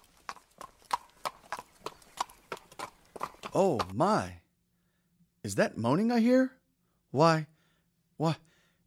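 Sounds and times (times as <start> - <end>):
donkey hooves clopping: 0.0 - 4.3
speech: 3.6 - 4.4, 5.4 - 7.5, 8.2 - 8.4.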